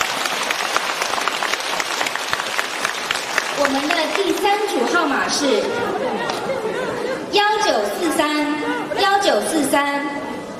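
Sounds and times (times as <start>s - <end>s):
audience applause: 0.0s - 7.0s
speech: 3.7s - 10.3s
laughter: 4.7s - 9.3s.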